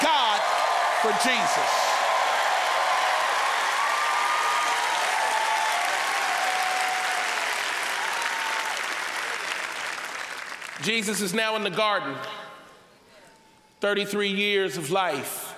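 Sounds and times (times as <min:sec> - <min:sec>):
audience clapping: 0:00.0 - 0:11.3
speech: 0:01.0 - 0:01.9, 0:10.8 - 0:12.4, 0:13.8 - 0:15.4.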